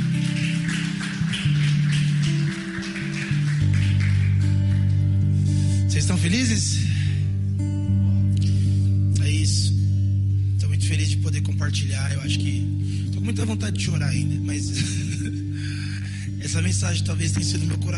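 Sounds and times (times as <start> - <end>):
audience applauding: 0.0 - 5.7
sustained keyboard chords: 0.0 - 17.9
speech: 6.1 - 6.9, 13.4 - 15.8, 16.5 - 17.9.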